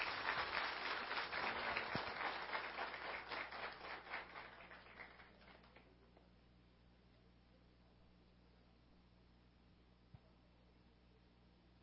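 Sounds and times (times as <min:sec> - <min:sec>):
audience applause: 0:00.0 - 0:05.9.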